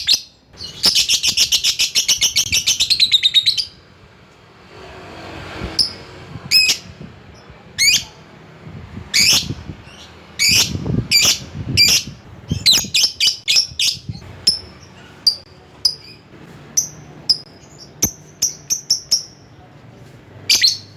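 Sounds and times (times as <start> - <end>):
lovebird chattering in a buzzy trill with shrill chirps: 0.0 - 3.9, 9.1 - 19.6, 20.5 - 20.9.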